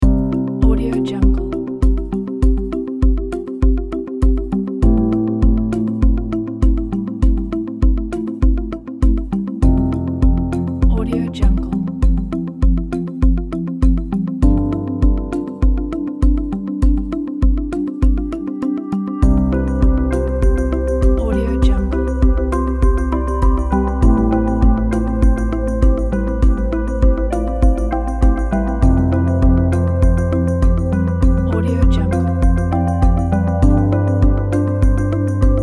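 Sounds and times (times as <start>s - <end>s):
ambient corporate music: 0.0s - 35.6s.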